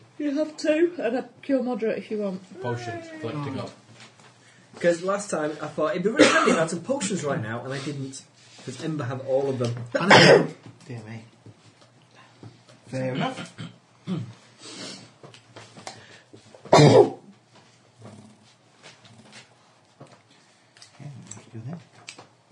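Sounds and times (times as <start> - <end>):
speech: 0.2 - 3.8, 4.8 - 11.3, 12.9 - 14.8, 16.8 - 17.2
sneeze: 10.0 - 10.6, 16.7 - 17.2.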